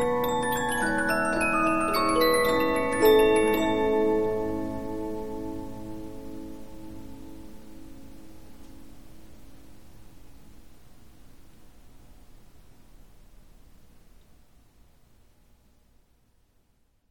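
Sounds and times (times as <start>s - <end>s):
Polyphon 15-inch disc music box playing: 0.0s - 5.8s.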